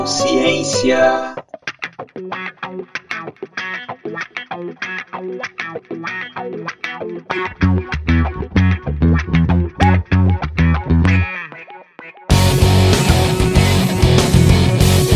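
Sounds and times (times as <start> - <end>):
groove music track: 0.0 - 1.5, 7.1 - 15.1
speech: 0.3 - 1.4, 2.1 - 3.9.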